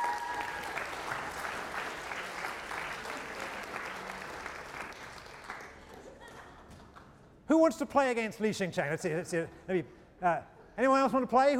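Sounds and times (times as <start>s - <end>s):
applause: 0.0s - 7.2s
speech: 7.5s - 11.5s.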